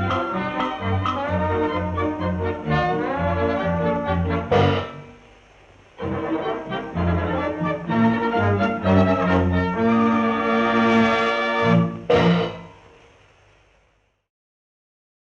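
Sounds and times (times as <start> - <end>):
Viennese orchestra playing: 0.0 - 5.3, 6.0 - 12.9.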